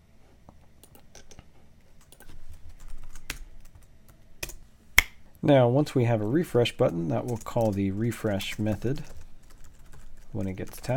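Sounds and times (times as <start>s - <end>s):
rapid typing on a computer keyboard while writing code: 2.0s - 4.6s, 6.6s - 10.9s
speech: 5.4s - 9.2s, 10.3s - 10.9s.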